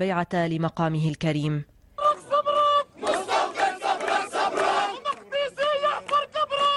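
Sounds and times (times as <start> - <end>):
speech: 0.0 - 1.7
crowd chanting in Jerusalem: 2.0 - 6.6.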